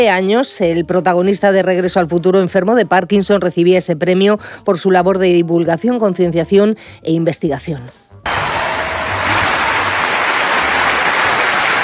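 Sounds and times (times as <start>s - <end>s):
speech: 0.0s - 8.5s
audience ovation applause: 8.3s - 11.8s.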